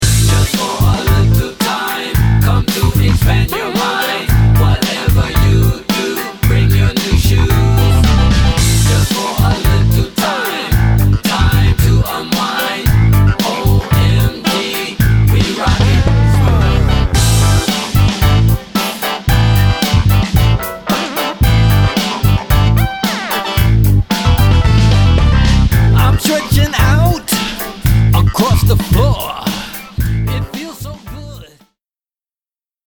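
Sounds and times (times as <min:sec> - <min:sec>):
funk music: 0:00.0 - 0:31.6.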